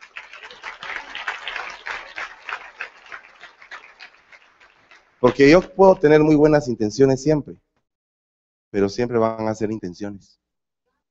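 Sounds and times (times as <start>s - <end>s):
audience applause: 0.0s - 6.3s
speech: 5.2s - 7.6s, 8.7s - 10.4s.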